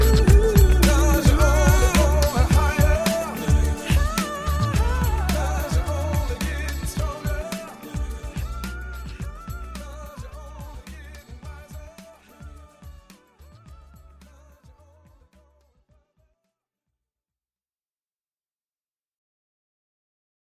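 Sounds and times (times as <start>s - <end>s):
smooth groove music: 0.0s - 15.3s.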